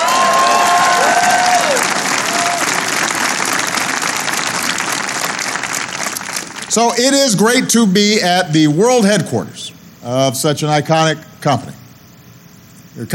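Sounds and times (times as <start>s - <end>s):
audience round of applause: 0.0s - 7.3s
speech: 6.8s - 11.8s, 13.0s - 13.1s.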